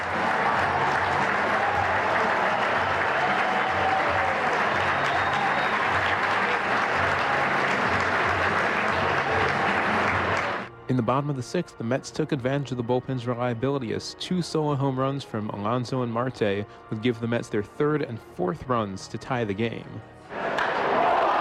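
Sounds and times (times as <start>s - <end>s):
cheers and whistles: 0.0s - 10.7s, 20.4s - 21.3s
large stadium crowd applauding: 0.0s - 10.7s, 20.4s - 21.3s
speech: 10.9s - 20.2s.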